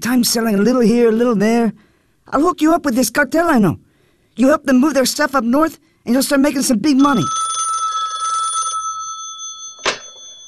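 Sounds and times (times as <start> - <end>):
speech: 0.0 - 3.8, 4.4 - 7.4
telephone bell ringing: 7.0 - 10.4.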